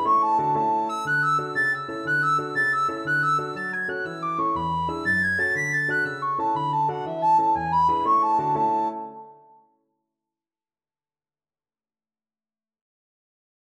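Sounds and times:
recorder playing a medley of Irish jigs: 0:00.0 - 0:09.3.

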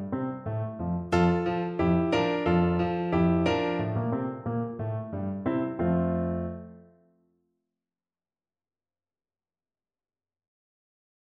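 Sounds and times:
musette: 0:00.0 - 0:07.0.

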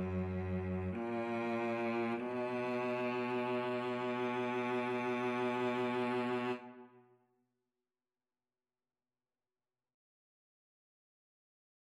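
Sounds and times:
cello duet: 0:00.0 - 0:07.0.

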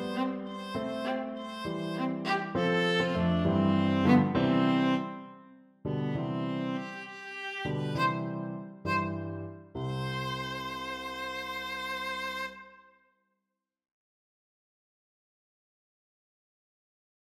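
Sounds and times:
viola: 0:00.0 - 0:12.9.

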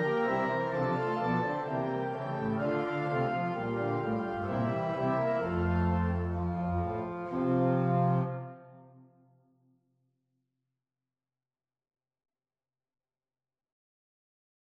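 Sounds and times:
organ: 0:00.0 - 0:08.6.

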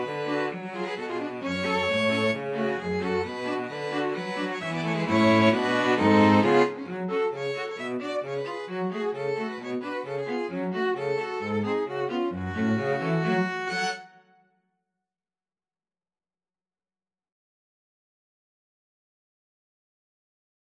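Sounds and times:
string quartet: 0:00.0 - 0:14.2.

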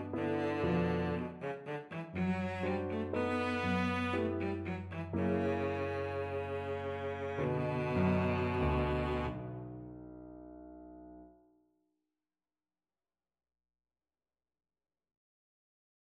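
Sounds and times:
waltz played on cello: 0:00.0 - 0:09.9.

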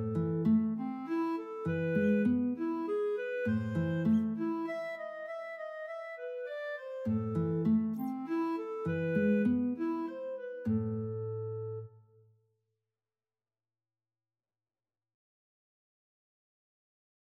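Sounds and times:
guitar and clarinet duet: 0:00.0 - 0:12.0.

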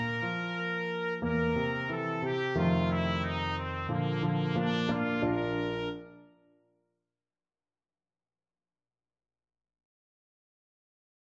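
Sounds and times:
trumpet playing an aria: 0:00.0 - 0:06.3.

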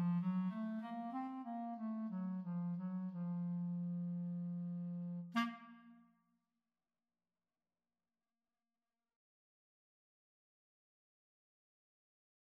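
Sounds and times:
clarinet duet: 0:00.0 - 0:06.0.

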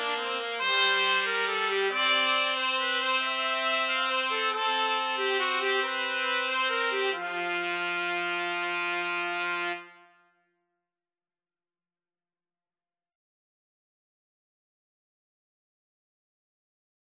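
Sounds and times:
trumpet trio: 0:00.0 - 0:10.2.

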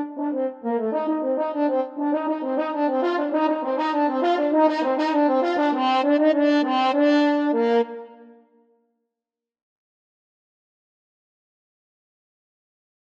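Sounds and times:
French horn duet: 0:00.0 - 0:08.0.

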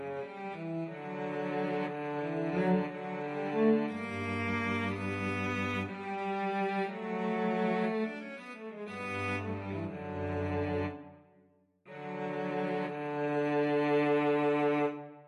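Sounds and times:
slow adagio cello duet: 0:00.0 - 0:11.2, 0:11.9 - 0:15.2.

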